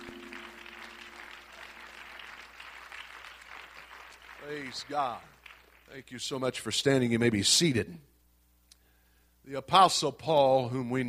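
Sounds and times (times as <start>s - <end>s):
audience clapping: 0.0s - 6.3s
speech: 4.4s - 5.3s, 5.9s - 8.1s, 9.5s - 11.0s.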